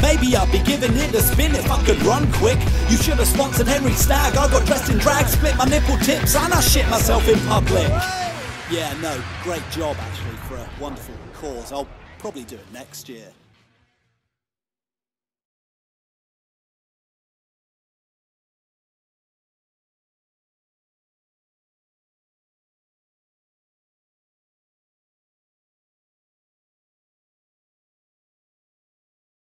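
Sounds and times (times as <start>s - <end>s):
rap music: 0.0s - 13.3s.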